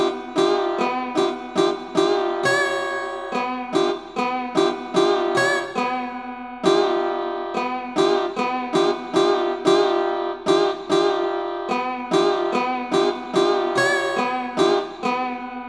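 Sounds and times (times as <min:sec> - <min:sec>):
koto: 0:00.0 - 0:15.6.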